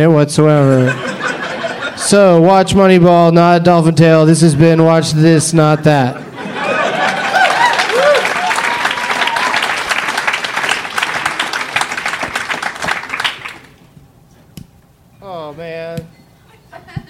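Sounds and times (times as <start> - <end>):
speech: 0.0 - 1.2, 2.0 - 6.3
laughter: 0.6 - 2.4, 5.5 - 12.1, 16.5 - 17.0
applause sound effect: 7.0 - 13.8.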